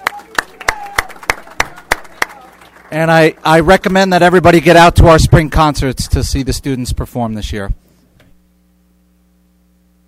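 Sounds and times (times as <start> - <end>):
students applauding at a school gathering: 0.0 - 6.2
speech: 2.9 - 7.8.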